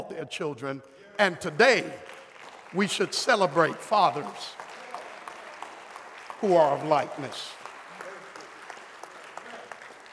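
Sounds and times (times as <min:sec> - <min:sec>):
speech: 0:00.1 - 0:04.6, 0:06.4 - 0:07.6
weak applause from audience: 0:01.2 - 0:10.1.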